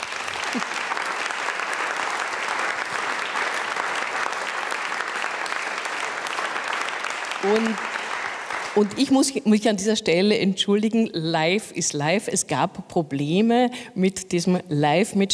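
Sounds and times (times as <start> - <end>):
audience applause: 0.0 - 9.1
speech: 0.5 - 0.8, 7.4 - 7.9, 8.8 - 15.3.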